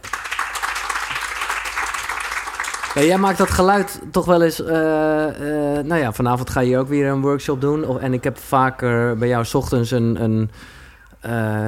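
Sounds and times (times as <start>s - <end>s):
audience applause welcoming a guest: 0.0s - 3.9s
speech: 3.0s - 11.6s.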